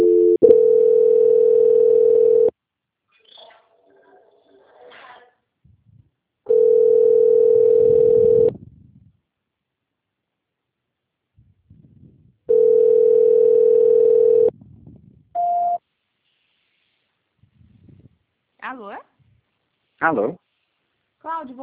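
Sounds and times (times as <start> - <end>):
telephone tones during a call transfer: 0.0 - 2.5, 6.5 - 8.5, 12.5 - 14.5
speech: 20.0 - 20.4, 21.4 - 21.6.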